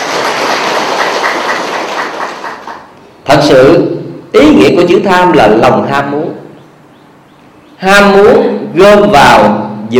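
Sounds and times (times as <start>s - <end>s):
round of applause: 0.0s - 2.9s
speech: 3.5s - 6.4s, 7.8s - 9.9s.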